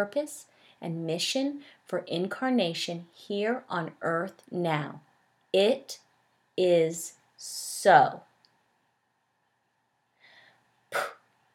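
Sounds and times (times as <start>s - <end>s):
speech: 0.0s - 6.0s, 6.6s - 8.3s, 10.9s - 11.2s
soft airy breath: 0.5s - 0.8s, 10.1s - 11.2s
forceful action breath exhale in a spiritual breathing practice: 10.2s - 11.2s.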